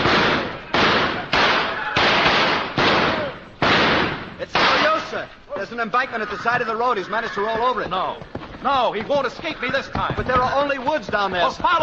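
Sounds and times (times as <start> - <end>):
gunshots in a radio drama: 0.0 - 5.2
speech: 5.6 - 11.8.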